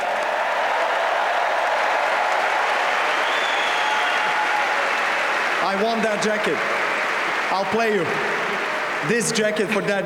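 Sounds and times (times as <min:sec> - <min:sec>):
audience applause: 0:00.0 - 0:10.0
speech: 0:05.7 - 0:06.8, 0:07.5 - 0:08.4, 0:09.0 - 0:10.0.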